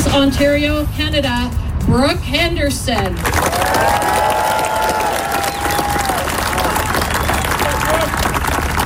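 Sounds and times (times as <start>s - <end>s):
speech: 0.1s - 4.1s
golf gallery applause: 3.1s - 8.8s.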